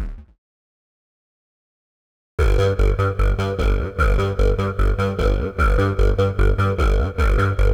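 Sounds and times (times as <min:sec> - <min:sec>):
synth and bass loop at 150 bpm: 0:02.4 - 0:07.7.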